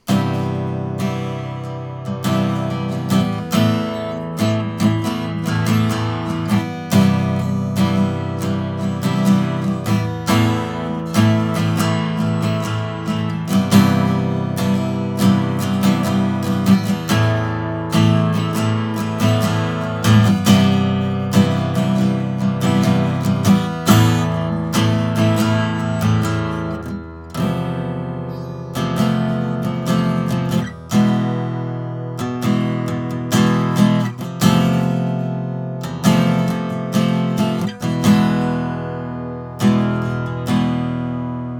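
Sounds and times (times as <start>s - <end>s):
acoustic music: 0.0s - 41.5s.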